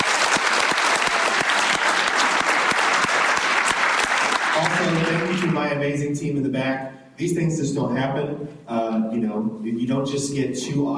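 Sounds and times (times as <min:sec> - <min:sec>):
audience round of applause: 0:00.0 - 0:05.6
speech: 0:05.7 - 0:10.9.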